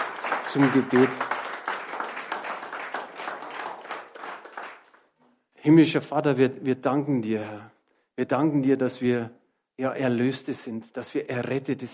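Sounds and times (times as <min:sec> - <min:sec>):
crowd applause: 0:00.0 - 0:05.1
speech: 0:00.5 - 0:01.3, 0:05.6 - 0:11.9.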